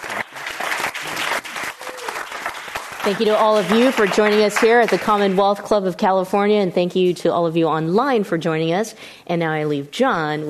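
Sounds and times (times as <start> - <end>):
audience applause: 0.0 - 5.4
speech: 3.0 - 10.4.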